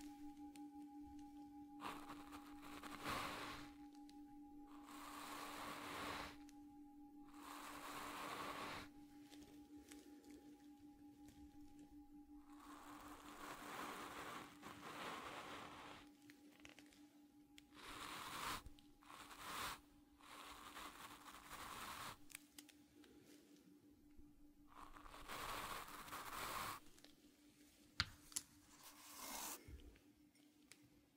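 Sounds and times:
Tibetan singing bowl humming: 0:00.0 - 0:20.2
brushing, foam and burlap strokes: 0:00.0 - 0:22.6, 0:24.7 - 0:27.1, 0:28.7 - 0:29.8.

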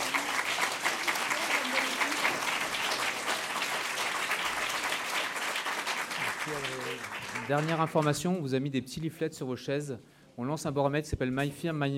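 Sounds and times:
audience applause: 0:00.0 - 0:08.2
speech: 0:07.5 - 0:11.9.

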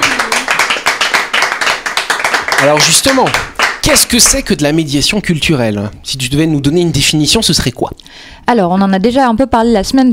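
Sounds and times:
audience clapping: 0:00.0 - 0:04.8
speech: 0:02.6 - 0:10.1.

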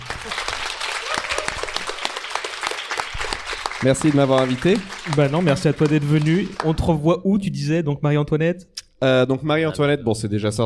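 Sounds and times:
audience applause: 0:00.0 - 0:07.0
speech: 0:03.8 - 0:10.6.

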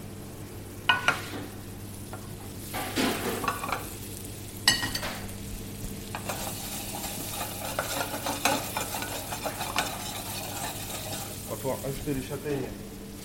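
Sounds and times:
meat sizzling in a hot pan: 0:00.8 - 0:13.2
utensils clinking: 0:06.2 - 0:11.4
scraping stirs: 0:06.2 - 0:11.6
speech: 0:11.9 - 0:12.8.

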